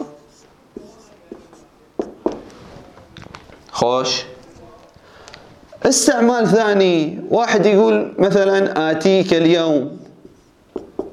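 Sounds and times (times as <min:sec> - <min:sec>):
writing on a board: 0:00.0 - 0:02.6, 0:10.2 - 0:11.1
speech: 0:03.8 - 0:04.3, 0:05.8 - 0:10.0.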